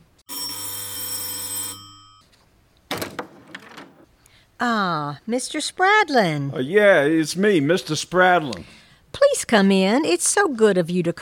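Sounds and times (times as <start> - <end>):
doorbell ringing: 0.3 - 2.3
speech: 4.6 - 8.8, 9.4 - 11.2.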